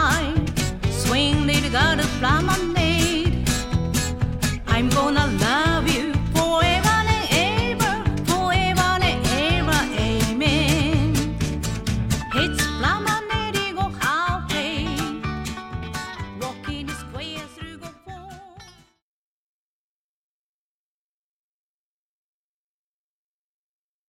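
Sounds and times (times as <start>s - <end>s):
vocals: 0.0s - 18.9s.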